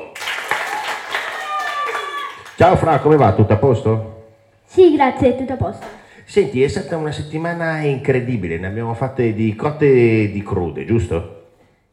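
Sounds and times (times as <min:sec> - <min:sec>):
crowd applause: 0:00.0 - 0:03.1
speech: 0:02.6 - 0:04.2, 0:04.8 - 0:11.3.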